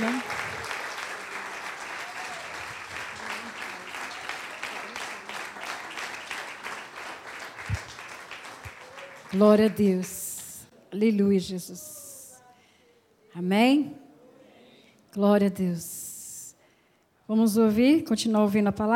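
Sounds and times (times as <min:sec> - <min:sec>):
audience applauding: 0:00.0 - 0:10.5
speech: 0:09.4 - 0:10.2, 0:11.0 - 0:11.9, 0:13.4 - 0:14.0, 0:15.1 - 0:16.0, 0:17.3 - 0:18.9.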